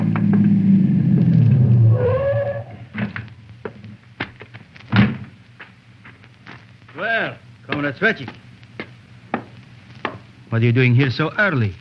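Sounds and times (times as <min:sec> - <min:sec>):
car engine rumbling to a stop: 0:00.0 - 0:04.1
speech: 0:07.9 - 0:08.4, 0:10.5 - 0:11.7.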